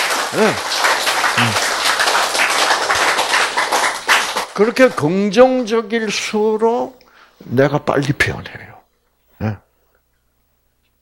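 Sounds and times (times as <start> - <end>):
audience clapping: 0.0 - 5.8
speech: 0.3 - 1.7, 4.6 - 8.7, 9.4 - 9.6.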